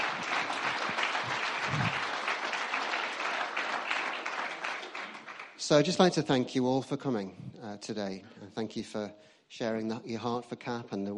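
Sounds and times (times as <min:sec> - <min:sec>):
audience clapping: 0:00.0 - 0:06.2
speech: 0:05.7 - 0:11.1.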